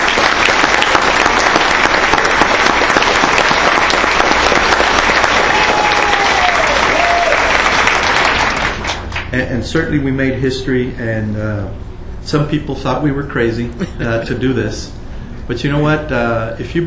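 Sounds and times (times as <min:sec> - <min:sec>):
audience applause: 0:00.0 - 0:09.3
speech: 0:09.4 - 0:16.8.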